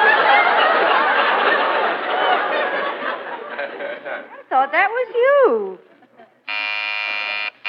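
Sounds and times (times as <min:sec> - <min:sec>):
laughter: 0:00.0 - 0:07.6
speech: 0:04.6 - 0:05.9
front door buzzer: 0:06.5 - 0:07.6.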